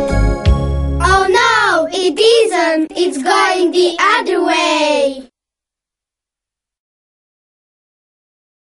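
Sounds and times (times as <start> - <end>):
song: 0.0 - 5.1.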